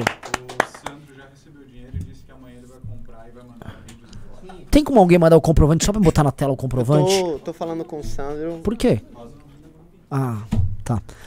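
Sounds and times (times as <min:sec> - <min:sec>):
people clapping: 0:00.0 - 0:01.1
speech: 0:04.7 - 0:09.4, 0:10.1 - 0:11.2.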